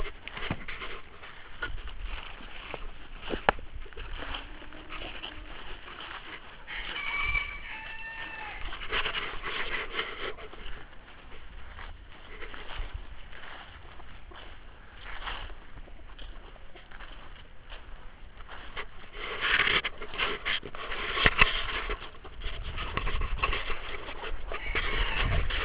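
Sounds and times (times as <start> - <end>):
chicken clucking: 0.0 - 19.1, 19.8 - 25.6.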